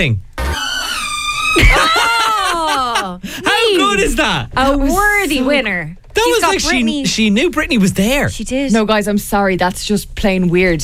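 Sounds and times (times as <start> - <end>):
speech: 0.0 - 0.3, 1.6 - 2.0, 3.0 - 10.8
door creaking on a phone call: 0.3 - 2.1, 4.0 - 8.2
laughter: 1.0 - 4.0.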